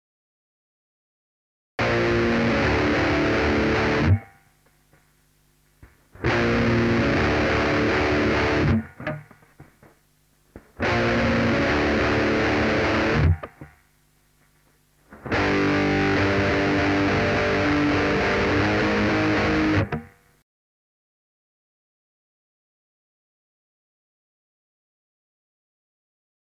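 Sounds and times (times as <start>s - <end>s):
saturated guitar: 1.8s - 4.5s, 5.8s - 9.9s, 10.5s - 13.8s, 15.1s - 20.4s.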